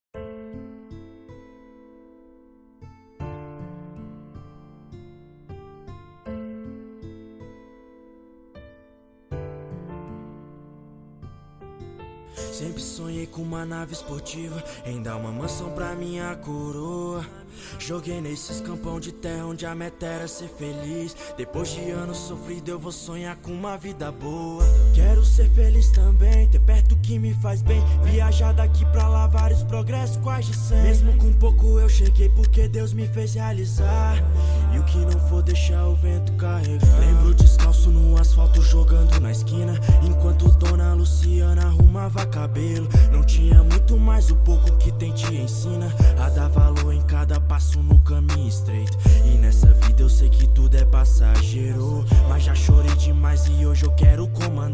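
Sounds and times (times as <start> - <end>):
deep bass: 24.6 - 54.7.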